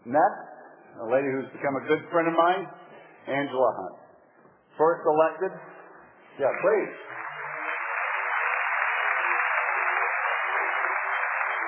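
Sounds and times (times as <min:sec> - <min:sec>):
speech: 0:00.1 - 0:04.0, 0:04.8 - 0:05.7, 0:06.4 - 0:07.2
audience applause: 0:06.5 - 0:11.6.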